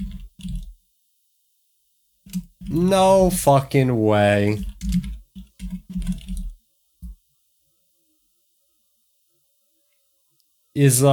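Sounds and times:
keyboard typing while writing notes: 2.3 - 3.6, 4.4 - 6.6
speech: 2.7 - 5.0, 10.8 - 11.1.

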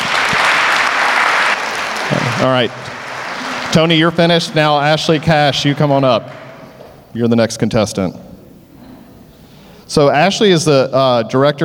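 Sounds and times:
crowd applauding: 0.0 - 6.6
speech: 2.4 - 2.9, 3.7 - 6.4, 7.1 - 8.2, 9.9 - 11.6.

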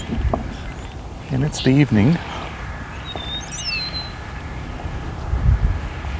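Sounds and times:
low steady rumble: 0.0 - 6.1
starlings and an eastern meadowlark singing: 0.0 - 6.1
speech: 1.3 - 2.3.

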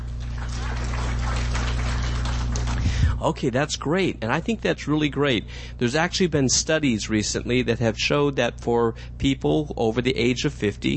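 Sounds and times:
audience clapping hands: 0.0 - 2.8
low hum: 0.0 - 10.9
speech: 3.2 - 10.9.

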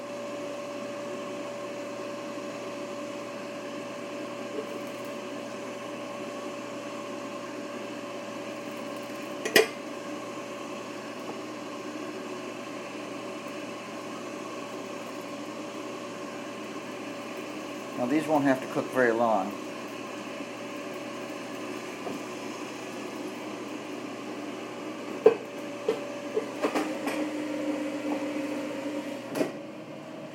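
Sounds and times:
air fryer fan hum with steak fries inside: 0.0 - 30.3
speech: 18.0 - 19.6.

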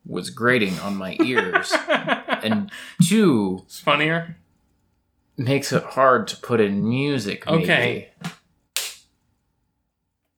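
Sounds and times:
speech: 0.2 - 4.4, 5.4 - 8.4
laughter: 0.8 - 2.8
hand clap: 8.2 - 9.1.

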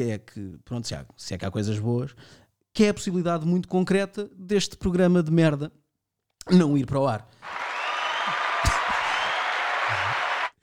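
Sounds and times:
speech: 0.0 - 5.8, 6.4 - 7.6
round of applause: 7.4 - 10.6.

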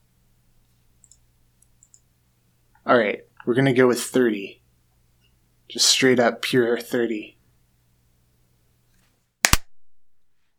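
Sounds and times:
speech: 2.8 - 4.6, 5.7 - 7.4
single decisive hand clap: 9.4 - 9.7.

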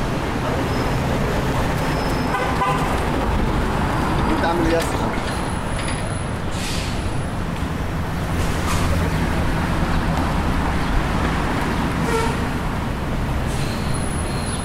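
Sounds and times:
downtown traffic rumble at McGill University: 0.0 - 14.6.

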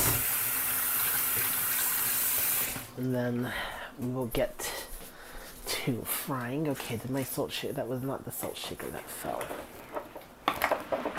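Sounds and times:
tap water running while washing up: 0.0 - 3.0
speech: 3.0 - 4.8, 5.8 - 9.8.

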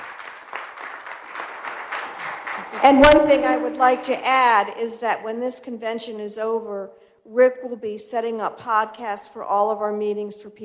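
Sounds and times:
audience applause: 0.0 - 3.3
speech: 2.7 - 10.6.

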